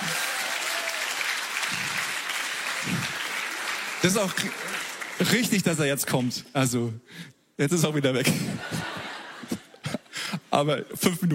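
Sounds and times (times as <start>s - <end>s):
audience applause: 0.0s - 5.8s
speech: 4.0s - 8.9s, 10.6s - 11.3s
laughter: 8.2s - 10.2s.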